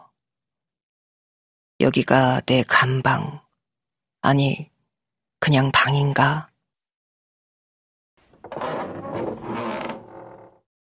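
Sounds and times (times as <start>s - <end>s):
speech: 1.8s - 3.4s, 4.2s - 4.7s, 5.5s - 6.5s, 8.5s - 9.3s
door creaking open as a cold handle is turned: 8.3s - 10.7s.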